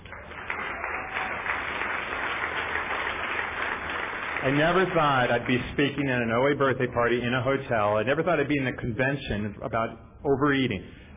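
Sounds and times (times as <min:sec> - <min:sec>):
audience applause: 0:00.0 - 0:06.0
speech: 0:04.4 - 0:11.0.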